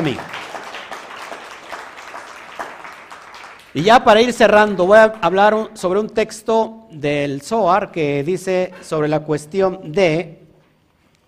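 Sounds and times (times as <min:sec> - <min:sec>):
speech: 0:00.0 - 0:00.4, 0:03.7 - 0:10.4
audience applause: 0:00.0 - 0:03.8.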